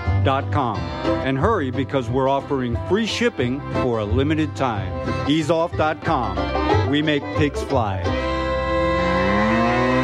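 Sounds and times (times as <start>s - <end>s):
speech: 0.2s - 8.2s
cow mooing: 8.4s - 10.0s.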